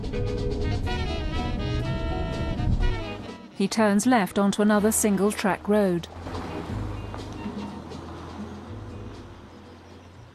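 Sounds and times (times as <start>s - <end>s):
pickup truck engine rumble approaching on a rural single-track road: 0.0s - 3.5s, 4.6s - 10.3s
speech: 0.1s - 1.1s, 3.6s - 6.2s.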